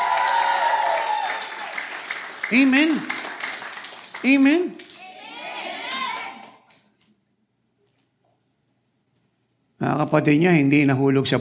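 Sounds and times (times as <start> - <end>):
audience clapping loudly: 0.0 - 5.2, 5.8 - 6.8
speech: 2.5 - 3.2, 4.2 - 4.8, 9.8 - 11.3.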